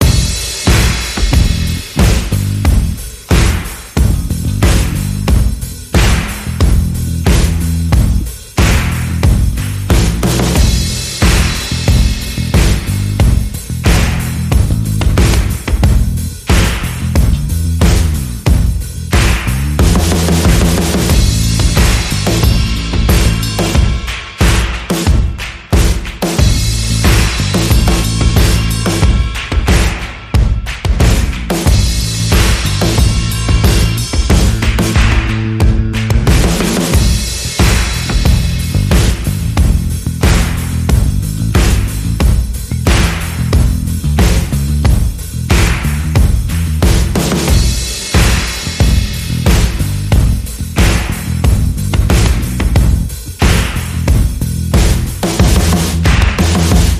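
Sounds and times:
bass: 0.0s - 56.9s
percussion: 0.0s - 56.9s.

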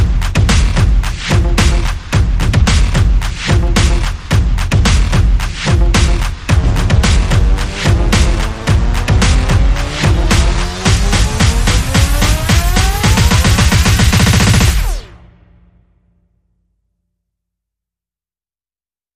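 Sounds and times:
percussion: 0.0s - 15.3s
sound effects: 5.7s - 16.1s.

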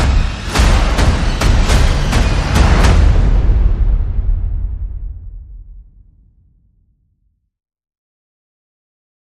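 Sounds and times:
sound effects: 0.0s - 5.1s
percussion: 0.0s - 6.4s.

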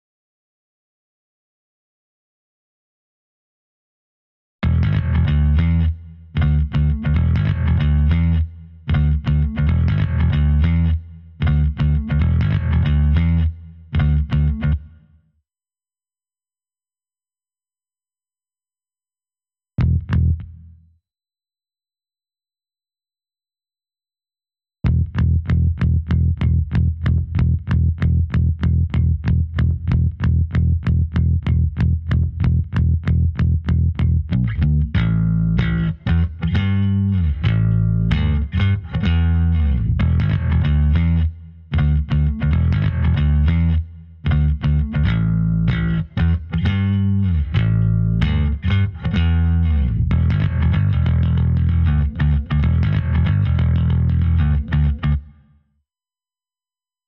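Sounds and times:
bass: 4.6s - 15.2s, 19.8s - 20.9s, 24.8s - 55.5s.

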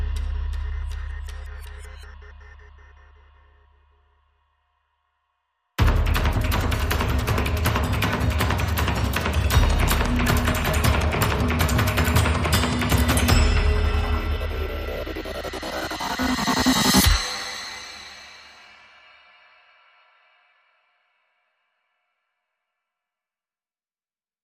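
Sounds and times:
percussion and pulses: 0.0s - 4.5s, 5.8s - 19.5s.

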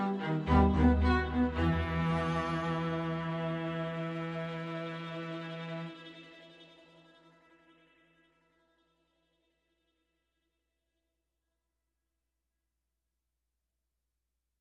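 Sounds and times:
strings: 0.0s - 8.4s.

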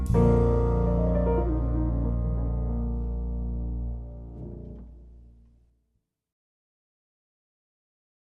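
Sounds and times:
trio playing: 0.2s - 4.9s.

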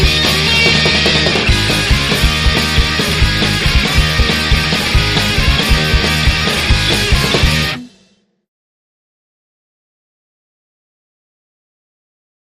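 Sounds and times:
lead guitar: 0.0s - 8.2s.

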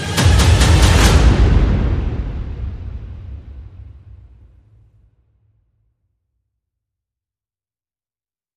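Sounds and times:
percussion: 0.0s - 4.7s.

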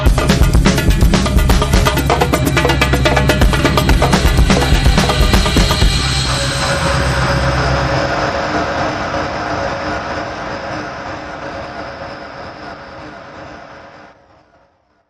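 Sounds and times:
cuica sting: 0.1s - 10.2s.

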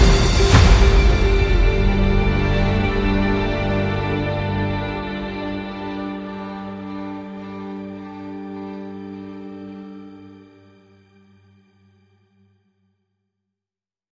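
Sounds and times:
guitar: 0.0s - 11.3s.

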